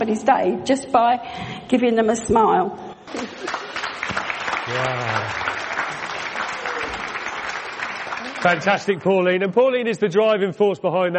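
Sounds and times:
speech: 0:00.0 - 0:03.6, 0:04.7 - 0:05.6, 0:08.4 - 0:11.1
audience applause: 0:03.1 - 0:09.2.

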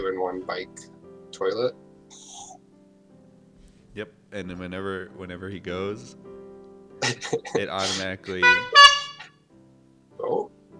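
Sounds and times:
speech: 0:00.2 - 0:02.3, 0:04.0 - 0:06.4, 0:07.0 - 0:08.9
horn honking: 0:07.8 - 0:09.3.

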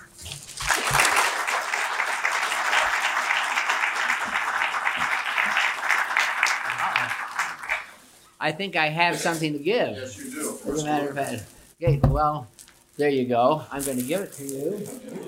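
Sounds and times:
audience applause welcoming West Virginia University's new athletic director: 0:00.6 - 0:08.0
speech: 0:08.4 - 0:15.2.

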